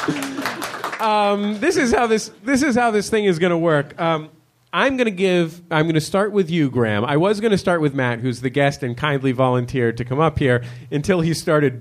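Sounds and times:
audience round of applause: 0:00.0 - 0:01.6
speech: 0:01.0 - 0:11.8.

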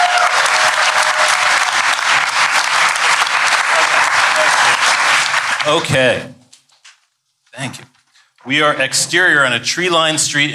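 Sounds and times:
audience applause: 0:00.0 - 0:06.0
speech: 0:05.7 - 0:06.4, 0:07.6 - 0:10.5.

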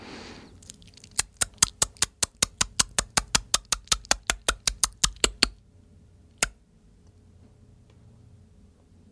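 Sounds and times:
person making mouth clicks imitating bat echolocation: 0:00.6 - 0:05.6.

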